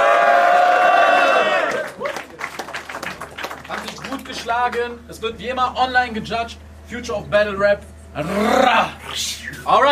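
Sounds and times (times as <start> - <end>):
high-pitched whoops: 0.0 - 1.9
crowd cheering and yelling: 0.0 - 2.1
scattered claps: 1.6 - 5.0
speech: 4.5 - 9.9.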